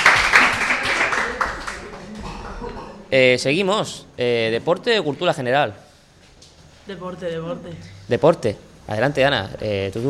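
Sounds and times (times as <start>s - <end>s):
applause for a correct answer: 0.0s - 2.1s
speech: 3.1s - 5.8s, 6.9s - 10.0s.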